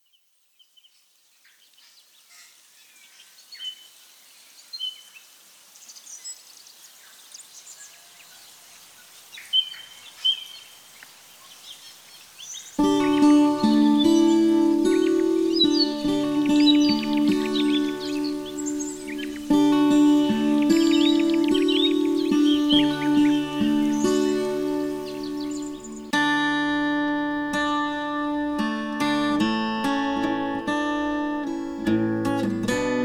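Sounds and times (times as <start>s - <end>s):
guitar: 12.8s - 33.0s.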